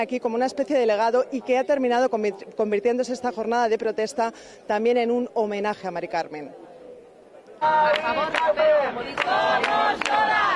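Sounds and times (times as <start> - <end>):
speech: 0.0 - 6.6, 7.6 - 10.5
protest crowd chanting a slogan: 7.6 - 10.5.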